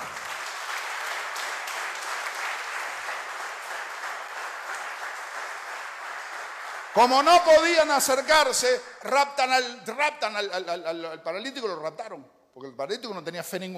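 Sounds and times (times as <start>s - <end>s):
audience applause: 0.0s - 7.6s
speech: 7.0s - 13.7s.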